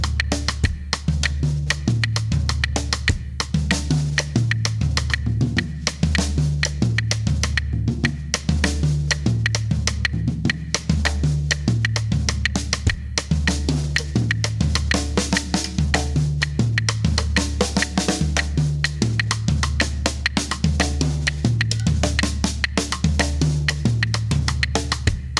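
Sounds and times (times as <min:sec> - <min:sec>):
drum kit playing guaguanco rhythm variations: 0:00.0 - 0:25.3.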